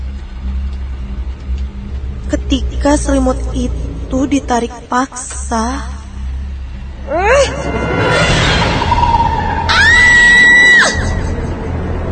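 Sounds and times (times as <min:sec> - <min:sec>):
low rumble: 0:00.0 - 0:12.1
speech: 0:02.4 - 0:06.0, 0:07.1 - 0:07.8
woman screaming loudly in a horror story: 0:08.4 - 0:11.4.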